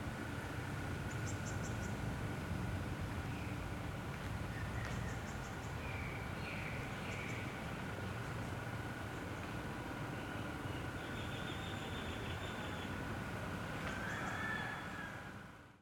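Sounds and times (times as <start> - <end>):
traffic at Koh Chang Trat Thailand: 0.0 - 15.7
birds at Wat Khlongphrao in Koh Chang Trat Thailand at calm midday: 1.0 - 2.0, 4.4 - 13.1, 13.8 - 15.6.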